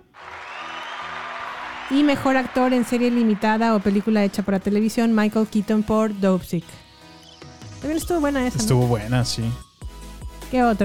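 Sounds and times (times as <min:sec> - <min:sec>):
applause: 0:00.0 - 0:05.4
speech: 0:01.9 - 0:06.8, 0:07.8 - 0:09.6, 0:10.5 - 0:10.8.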